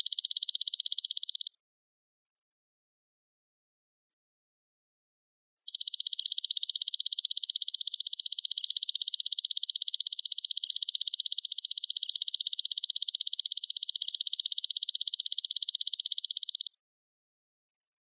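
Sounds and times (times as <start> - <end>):
cendet bird chirping: 0.0 - 1.5, 5.7 - 16.7.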